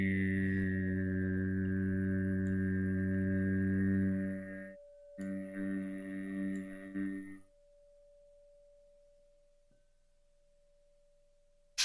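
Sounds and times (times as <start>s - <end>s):
faint thin hum: 0.0s - 7.5s
person chanting a long steady oo tone: 0.0s - 7.5s.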